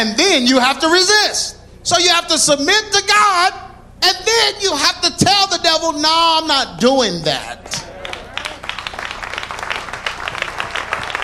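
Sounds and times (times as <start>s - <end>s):
speech: 0.0s - 7.8s
sparse audience hand claps: 7.7s - 11.2s.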